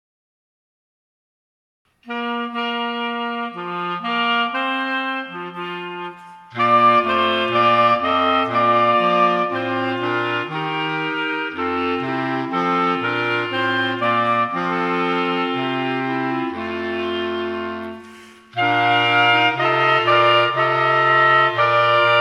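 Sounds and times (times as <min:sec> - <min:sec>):
clarinet playing a Christmas carol: 0:02.0 - 0:22.1.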